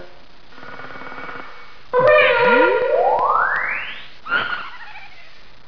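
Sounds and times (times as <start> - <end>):
cartoon sound: 2.0 - 5.3.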